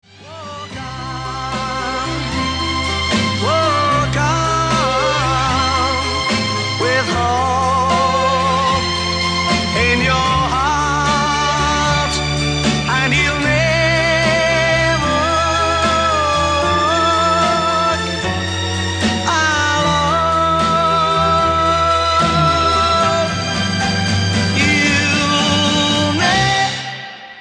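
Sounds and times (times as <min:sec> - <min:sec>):
hymn: 0:00.2 - 0:27.4.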